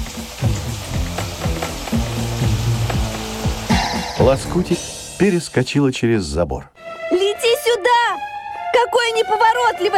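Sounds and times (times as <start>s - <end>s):
heavy rain drumming: 0.0s - 5.6s
speech: 4.2s - 6.8s, 7.8s - 8.2s, 8.8s - 9.9s.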